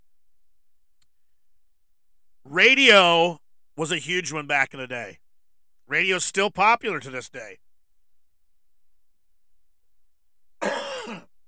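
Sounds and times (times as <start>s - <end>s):
speech: 2.5s - 5.2s, 5.9s - 7.6s
person clearing throat with a coffee toffee peanut stuck in it: 10.6s - 11.3s.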